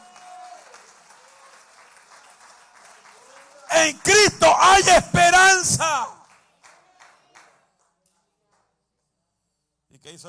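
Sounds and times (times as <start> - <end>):
audience applauding loudly: 0.0 - 7.5
speech: 3.8 - 6.2.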